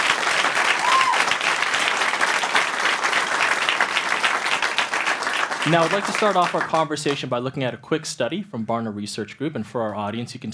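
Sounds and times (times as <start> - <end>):
audience applause: 0.0 - 7.2
speech: 5.6 - 10.5.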